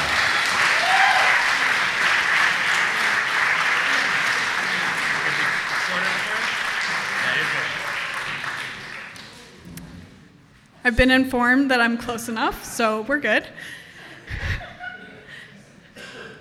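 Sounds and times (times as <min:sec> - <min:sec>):
audience applause: 0:00.0 - 0:09.6
speech: 0:10.9 - 0:14.4
laughter: 0:13.8 - 0:15.8.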